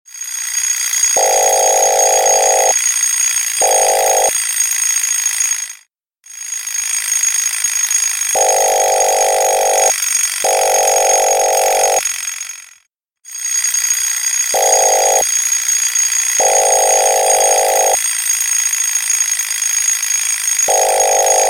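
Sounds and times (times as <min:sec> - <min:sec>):
wake-up alarm: 0:00.3 - 0:04.4, 0:08.3 - 0:12.4, 0:13.3 - 0:18.1, 0:20.6 - 0:21.4.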